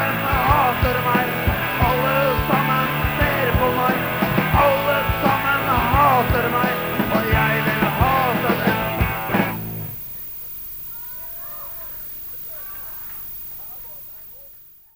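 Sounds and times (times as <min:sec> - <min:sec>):
concert music in a container: 0:00.0 - 0:10.0.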